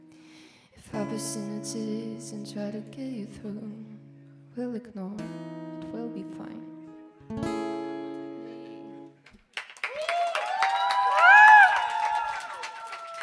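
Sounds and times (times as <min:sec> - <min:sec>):
speech: 0:01.0 - 0:03.9, 0:04.6 - 0:06.7
audience applause: 0:09.3 - 0:13.2
audience cheering: 0:09.7 - 0:13.2.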